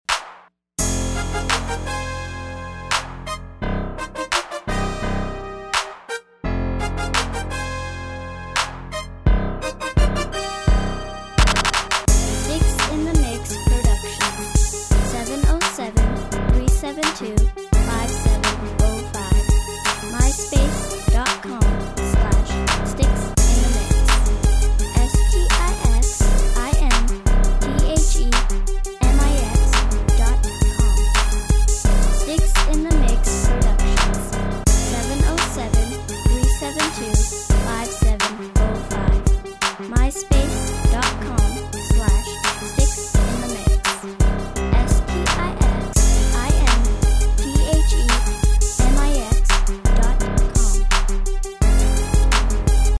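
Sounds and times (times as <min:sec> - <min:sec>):
crunk music: 0:00.1 - 0:52.9.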